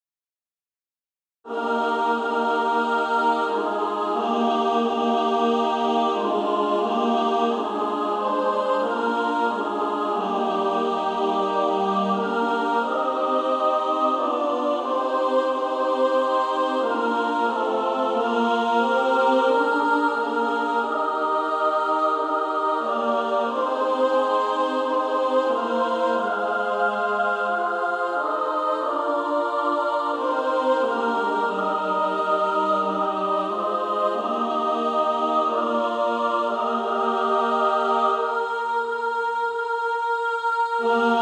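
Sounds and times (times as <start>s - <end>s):
female choir singing: 1.5s - 41.2s.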